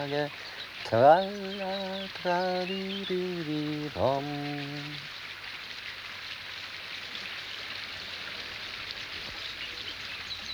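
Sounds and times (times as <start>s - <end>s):
flowing river water with small waves: 0.0s - 5.1s
speech: 0.0s - 5.1s.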